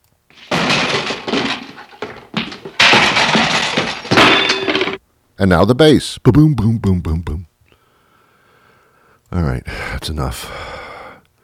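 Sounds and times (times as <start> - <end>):
busboy dropping plates in a kitchen: 0.3 - 5.0
speech: 5.4 - 7.5, 9.3 - 10.8.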